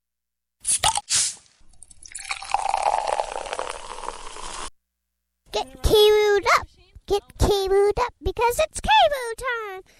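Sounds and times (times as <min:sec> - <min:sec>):
fizz and clatter: 0:00.7 - 0:04.7
drink pouring into a glass: 0:01.7 - 0:04.7
speech: 0:07.1 - 0:09.9.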